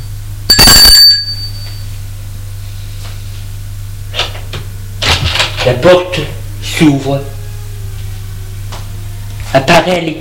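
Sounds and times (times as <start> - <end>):
low hum: 0.0 - 10.1
doorbell ringing: 0.5 - 1.9
speech: 5.7 - 7.4, 9.5 - 10.1.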